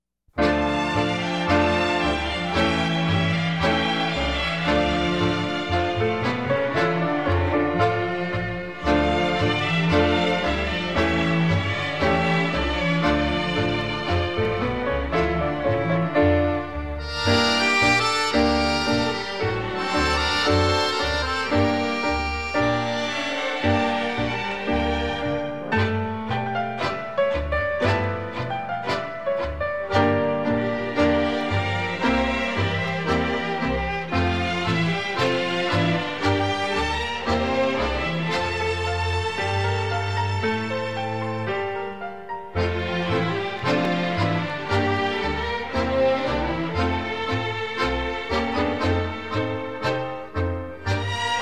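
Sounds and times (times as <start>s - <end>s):
instrumental tango on violins: 0.4s - 51.4s.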